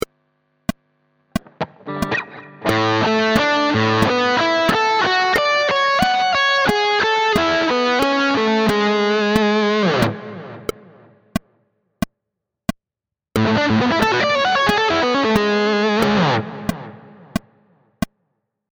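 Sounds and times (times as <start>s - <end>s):
A major 13 chord pattern: 1.4s - 11.1s, 13.4s - 17.4s.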